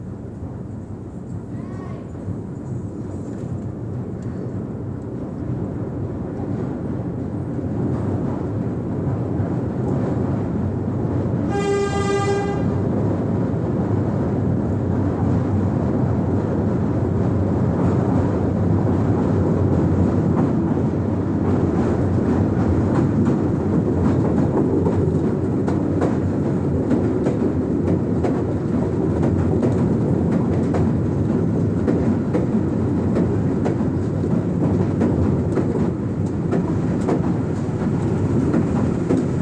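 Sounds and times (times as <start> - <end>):
pier train: 0.0 - 39.4
voices on a pier train: 1.5 - 2.2.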